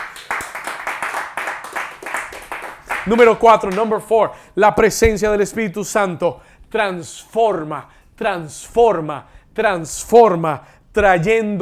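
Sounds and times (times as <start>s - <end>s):
audience applause: 0.0s - 3.2s
speech: 3.1s - 11.6s.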